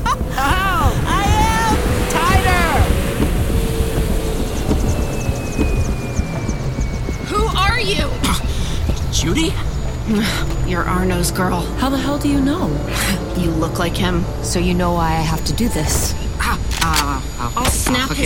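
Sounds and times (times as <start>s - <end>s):
people shouting: 0.0s - 2.9s
jet ski engine roaring over water: 0.0s - 7.4s
wind and spray: 0.0s - 9.1s
speech: 9.5s - 16.2s, 17.4s - 18.2s.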